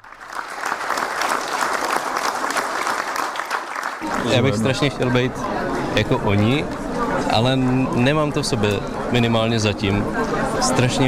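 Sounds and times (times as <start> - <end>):
audience applause in sold-out hall: 0.0 - 5.2
speech: 4.2 - 11.0.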